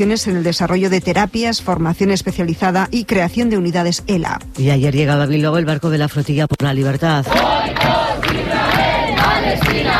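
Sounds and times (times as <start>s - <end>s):
speech: 0.0s - 8.1s, 9.5s - 9.9s
crowd shouting slogans welcoming a ship: 7.3s - 9.9s.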